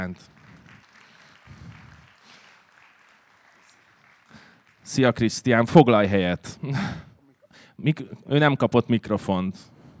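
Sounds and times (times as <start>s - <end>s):
speech: 0.0s - 0.4s, 4.8s - 7.1s, 7.8s - 9.7s
audience applause welcoming a guest: 0.0s - 5.1s.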